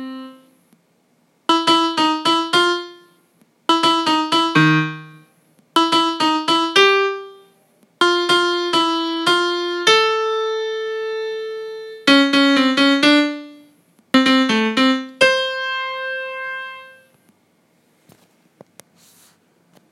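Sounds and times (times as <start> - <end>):
melody: 0.0 - 0.5, 1.5 - 3.1, 3.7 - 17.1.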